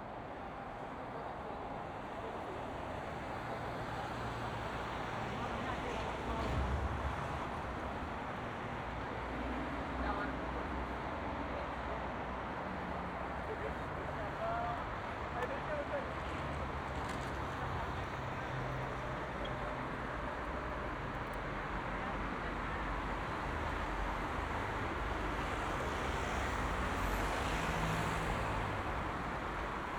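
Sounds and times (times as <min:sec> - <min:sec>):
busy street: 0:00.0 - 0:29.9.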